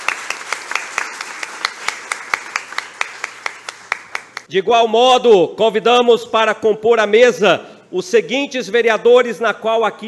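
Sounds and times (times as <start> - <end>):
audience applause: 0.0 - 4.5
speech: 4.5 - 10.0.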